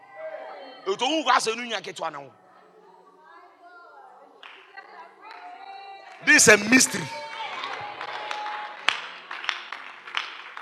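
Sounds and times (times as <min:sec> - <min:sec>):
speech: 0:00.8 - 0:02.4, 0:06.3 - 0:07.3
audience clapping: 0:06.1 - 0:10.6.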